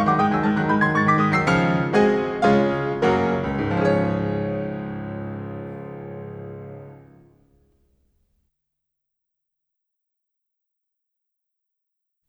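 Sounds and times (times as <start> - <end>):
piano piece in D flat major: 0.0 - 7.7.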